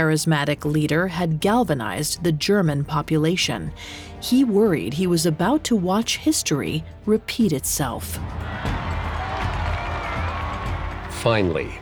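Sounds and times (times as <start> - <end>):
speech: 0.0 - 8.7, 11.2 - 11.7
crowd erupting in applause: 8.2 - 11.7.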